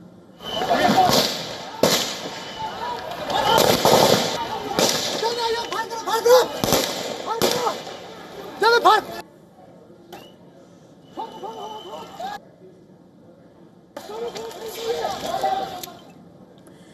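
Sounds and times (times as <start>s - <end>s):
crowd noise: 0.0s - 16.9s
raised voices: 0.4s - 9.2s, 11.0s - 12.4s, 14.0s - 16.2s
gunshots fired into the air by security personnel in Jahanabad: 0.7s - 5.7s, 6.5s - 8.2s.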